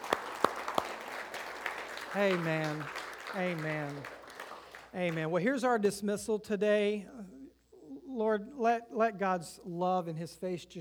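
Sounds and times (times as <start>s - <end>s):
audience clapping: 0.0s - 5.4s
speech: 2.1s - 4.2s, 4.9s - 7.3s, 8.2s - 10.7s.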